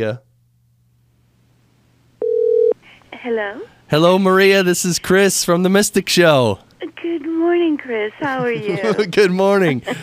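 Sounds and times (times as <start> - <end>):
speech: 0.0 - 0.3, 3.2 - 10.0
telephone ringing tone: 2.2 - 2.8
laughter: 8.2 - 10.0.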